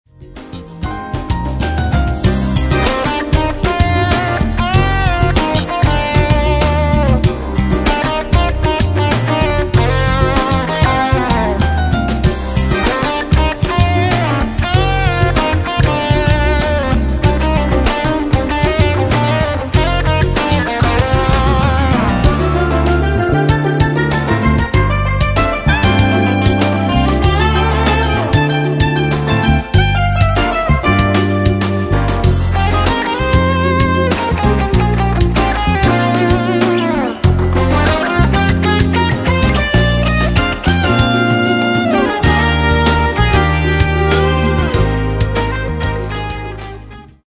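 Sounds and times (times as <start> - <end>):
funk music: 0.0 - 47.2.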